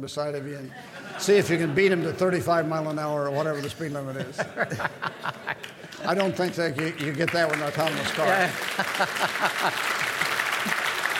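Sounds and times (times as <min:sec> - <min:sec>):
speech: 0:00.0 - 0:10.0
laughter: 0:00.4 - 0:11.1
studio audience applause: 0:05.3 - 0:11.1
people cheering: 0:05.6 - 0:11.1.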